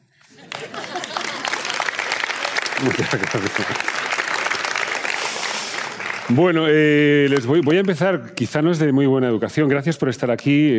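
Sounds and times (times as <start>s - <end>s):
laughter: 0.2s - 4.2s
audience applause: 0.2s - 8.0s
speech: 2.8s - 4.1s, 6.3s - 10.7s.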